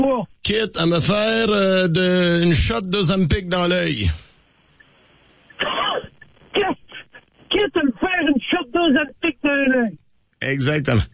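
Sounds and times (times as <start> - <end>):
speech: 0.1 - 4.3, 7.5 - 11.1
person coughing and choking: 5.6 - 7.0.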